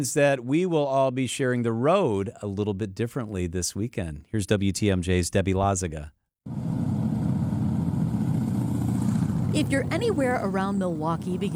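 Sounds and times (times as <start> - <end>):
speech: 0.0 - 6.7, 9.6 - 11.5
Harley-Davidson motorcycle engine idle rumble in Milwaukee: 6.6 - 11.5.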